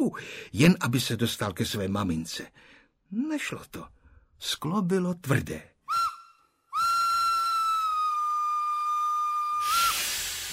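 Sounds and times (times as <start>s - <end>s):
speech: 0.0s - 5.7s
train steam whistle as train departs: 6.8s - 10.5s
hissing steam: 9.6s - 10.5s.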